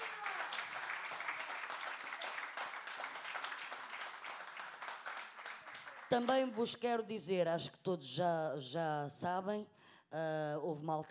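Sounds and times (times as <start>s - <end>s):
audience applause: 0.0s - 6.5s
speech: 6.1s - 11.0s.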